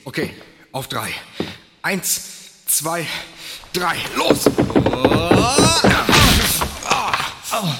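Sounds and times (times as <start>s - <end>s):
speech: 0.1s - 6.6s
three people throwing themselves against a door: 3.7s - 7.0s.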